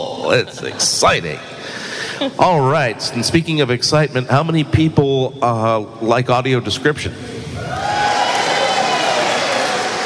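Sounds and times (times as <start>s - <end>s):
speech: 0.0s - 7.3s
audience applause: 7.8s - 10.0s.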